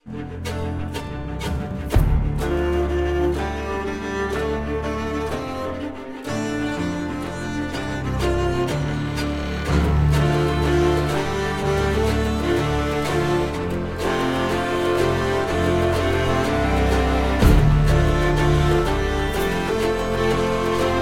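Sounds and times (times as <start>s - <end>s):
music: 0.0s - 21.0s.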